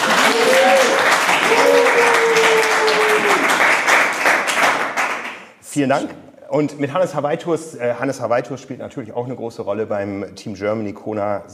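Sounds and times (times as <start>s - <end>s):
audience clapping: 0.0s - 5.6s
speech: 5.8s - 11.5s.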